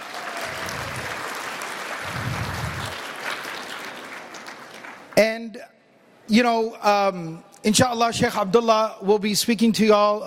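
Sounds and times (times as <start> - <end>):
sustained audience applause: 0.0 - 5.2
speech: 5.5 - 10.2.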